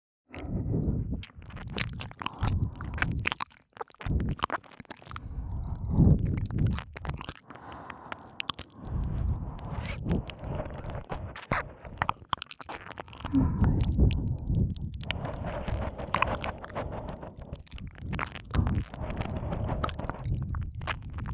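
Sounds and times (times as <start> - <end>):
ear licking on both ears: 0.3 - 21.3.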